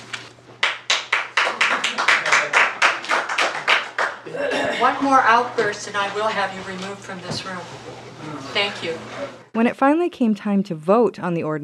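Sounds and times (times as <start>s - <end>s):
audience clapping in an indoor meeting room: 0.6s - 4.3s
speech: 4.8s - 11.6s.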